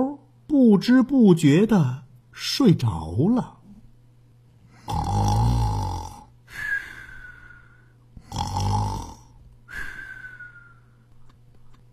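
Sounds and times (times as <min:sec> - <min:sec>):
speech: 0:00.0 - 0:03.6
snoring: 0:04.7 - 0:06.3, 0:08.2 - 0:09.4.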